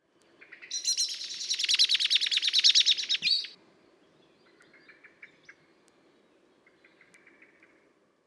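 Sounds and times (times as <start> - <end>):
Turdus merula singing: 0.7 - 3.6.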